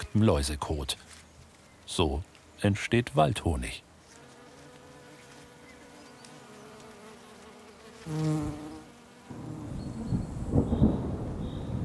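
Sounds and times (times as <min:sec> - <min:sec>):
speech: 0:00.2 - 0:01.2, 0:01.9 - 0:03.9, 0:08.0 - 0:08.7
honeybees buzzing: 0:03.9 - 0:11.6.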